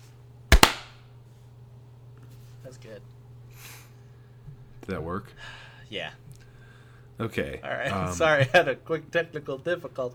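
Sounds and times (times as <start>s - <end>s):
low steady hum: 0.0s - 10.1s
hand claps for audio sync: 0.5s - 1.0s
speech: 2.6s - 3.8s, 4.8s - 6.3s, 7.2s - 10.1s.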